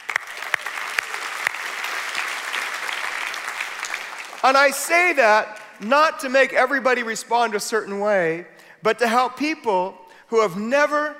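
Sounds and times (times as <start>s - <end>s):
audience applause: 0.0s - 4.6s
speech: 4.4s - 11.1s.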